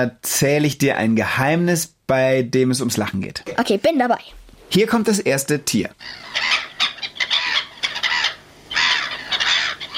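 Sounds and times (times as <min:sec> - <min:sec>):
speech: 0:00.0 - 0:06.5
black-headed gulls calling: 0:06.0 - 0:09.9.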